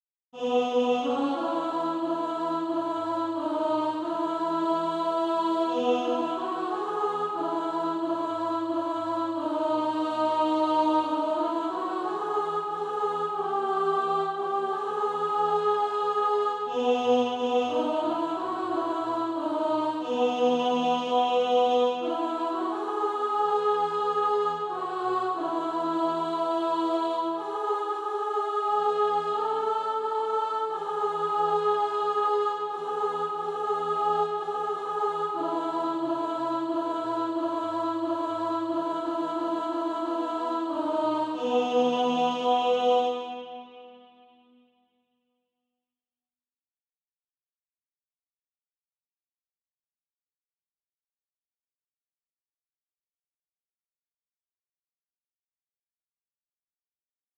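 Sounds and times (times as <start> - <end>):
alto voice singing practice music: 0.4 - 44.1.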